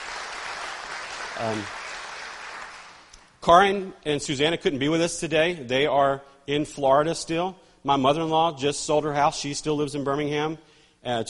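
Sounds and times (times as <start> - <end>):
audience applause: 0.0 - 3.1
speech: 1.4 - 1.8, 3.4 - 11.2.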